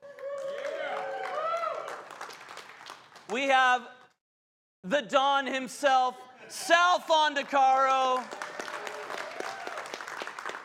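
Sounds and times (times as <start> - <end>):
audience applause: 0.0 - 3.4, 7.7 - 10.6
speech: 3.3 - 4.0, 4.8 - 8.4.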